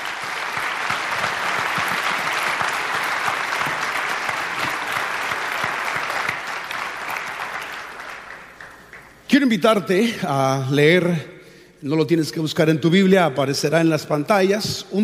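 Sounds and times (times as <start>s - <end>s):
audience applause: 0.0s - 9.2s
speech: 9.4s - 15.0s.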